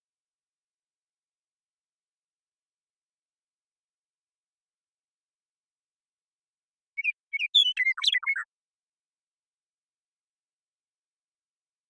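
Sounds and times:
western meadowlark singing: 0:07.0 - 0:08.5.

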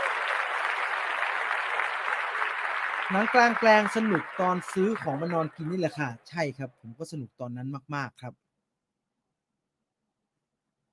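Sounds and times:
crowd clapping: 0:00.0 - 0:06.4
speech: 0:03.1 - 0:08.4.

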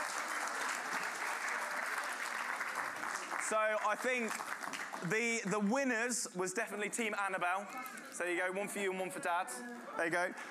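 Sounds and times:
applause: 0:00.0 - 0:05.7
speech: 0:03.5 - 0:10.4.

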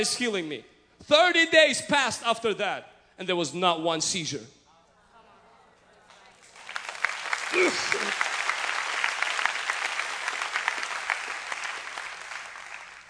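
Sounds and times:
speech: 0:00.0 - 0:04.6, 0:07.6 - 0:08.3
audience applause: 0:06.5 - 0:13.0.

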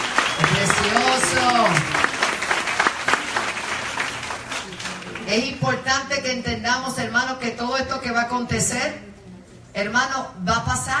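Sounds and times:
audience applause: 0:00.0 - 0:05.3
speech: 0:05.3 - 0:09.1, 0:09.8 - 0:10.9.

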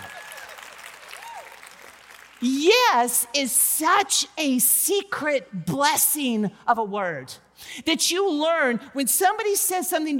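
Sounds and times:
audience clapping: 0:00.0 - 0:02.5
speech: 0:02.4 - 0:10.1.

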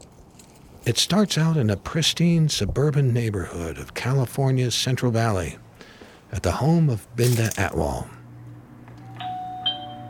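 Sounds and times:
speech: 0:00.8 - 0:05.6, 0:06.3 - 0:08.2
doorbell ringing: 0:09.0 - 0:10.0.

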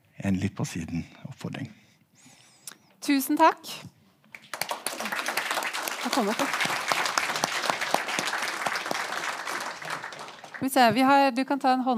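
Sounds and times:
speech: 0:00.2 - 0:01.8, 0:03.1 - 0:04.0, 0:06.0 - 0:06.8, 0:10.6 - 0:11.9
audience applause: 0:04.3 - 0:10.9.

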